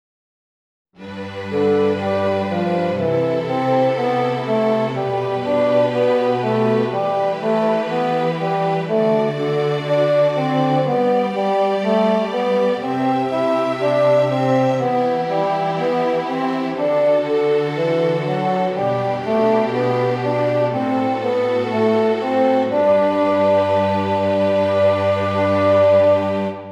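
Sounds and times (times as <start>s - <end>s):
contrapuntal music: 1.0s - 26.7s.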